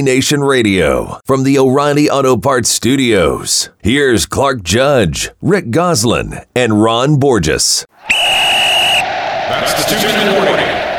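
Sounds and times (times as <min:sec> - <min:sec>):
speech: 0:00.0 - 0:07.9, 0:09.5 - 0:10.9
shrill referee-style whistle blast: 0:08.0 - 0:09.6.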